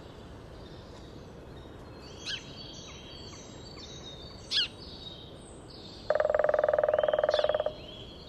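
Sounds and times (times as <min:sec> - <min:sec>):
grey-headed woodpecker in Landshut Hofgarten: 0:06.1 - 0:07.9.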